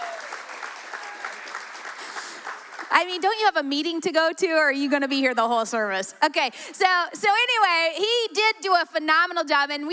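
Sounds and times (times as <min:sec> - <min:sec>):
audience applause: 0:00.0 - 0:03.0
speech: 0:02.9 - 0:09.9.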